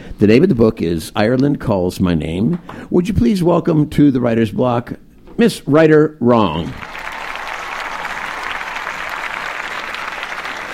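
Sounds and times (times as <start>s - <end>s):
speech: 0.2s - 6.9s
audience applause for the guest: 6.7s - 10.7s.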